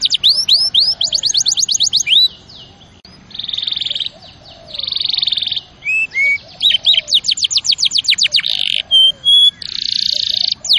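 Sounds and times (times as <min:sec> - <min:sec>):
canary song: 0:00.0 - 0:10.7.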